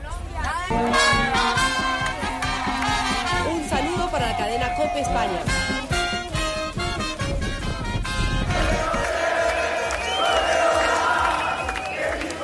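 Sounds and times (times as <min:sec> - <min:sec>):
Colombian football fans cheering in stadium: 0:00.7 - 0:12.4
speech: 0:04.8 - 0:05.8.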